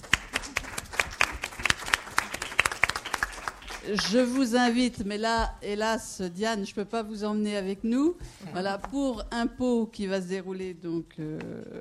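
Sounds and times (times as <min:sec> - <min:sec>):
audience applause: 0:00.0 - 0:04.4
speech: 0:03.8 - 0:11.7.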